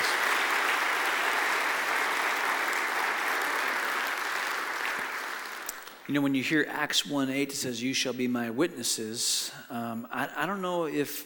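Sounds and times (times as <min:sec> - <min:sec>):
audience applause: 0:00.0 - 0:06.0
speech: 0:06.1 - 0:11.2.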